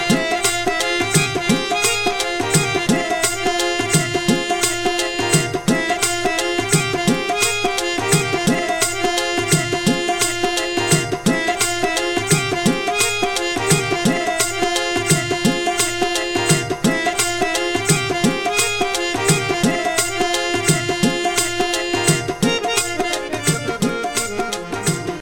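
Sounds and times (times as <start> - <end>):
Punjabi sarangi: 0.0 - 25.2
harmonium: 0.0 - 25.2.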